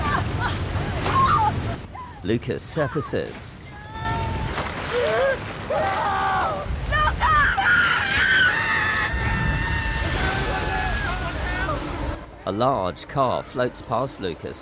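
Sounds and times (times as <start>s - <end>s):
rushing brown foaming floodwater roaring: 0.0s - 14.2s
speech: 2.2s - 3.6s, 12.5s - 14.6s
voices shouting and crying out: 3.8s - 11.9s.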